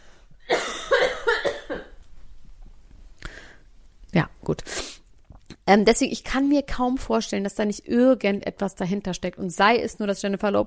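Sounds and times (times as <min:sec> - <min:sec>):
loud coughing: 0:00.5 - 0:02.0
speech: 0:05.7 - 0:10.6.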